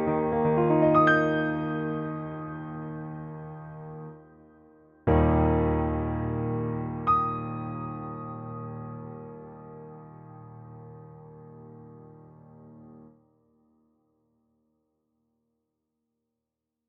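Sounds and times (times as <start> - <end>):
country piano music: 0.0 - 4.1, 5.1 - 10.8.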